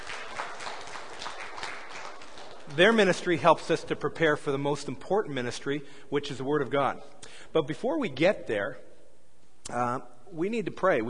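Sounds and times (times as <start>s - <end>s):
church congregation applauding its worship team: 0.0s - 3.8s
speech: 2.7s - 8.9s, 9.7s - 11.0s.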